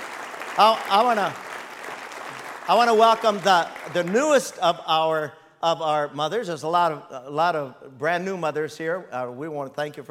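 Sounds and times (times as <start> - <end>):
audience applause: 0.0 - 4.5
speech: 0.6 - 1.4, 2.7 - 10.1.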